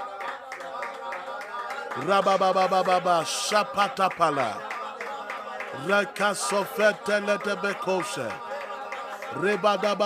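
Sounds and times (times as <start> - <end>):
audience clapping hands during prayer: 0.0 - 10.0
speech: 2.0 - 4.7, 5.7 - 8.5, 9.3 - 10.0.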